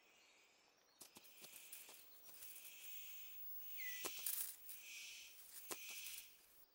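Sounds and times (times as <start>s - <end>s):
male bird calling to attract a female: 1.2s - 6.4s.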